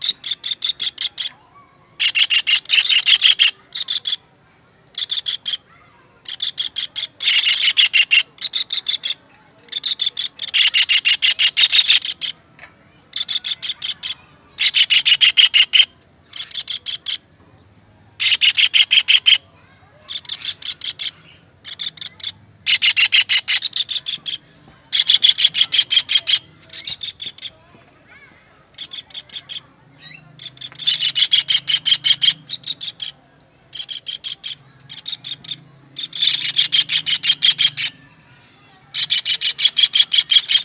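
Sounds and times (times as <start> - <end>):
kingfisher calling: 2.0 - 4.2, 4.9 - 12.4, 13.1 - 27.6, 28.7 - 38.2, 38.9 - 40.6.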